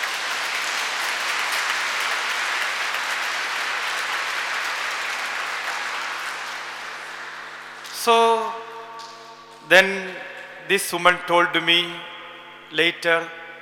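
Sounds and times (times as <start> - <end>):
audience clapping hands: 0.0 - 9.4
speech: 8.0 - 8.5, 9.7 - 12.1, 12.7 - 13.4.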